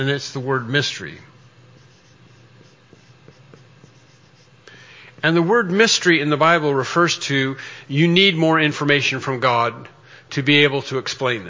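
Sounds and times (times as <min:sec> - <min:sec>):
speech: 0:00.0 - 0:01.3, 0:05.2 - 0:11.4
quiet hiss: 0:00.0 - 0:11.4
pen or marker writing on a board during a Bible lecture: 0:01.3 - 0:05.4.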